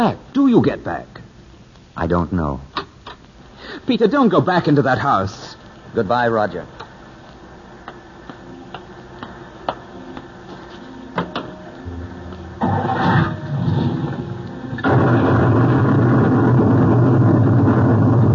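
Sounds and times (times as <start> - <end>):
speech: 0.0 - 1.2, 2.0 - 2.8, 3.6 - 6.8
lightning bolt striking: 12.6 - 18.3.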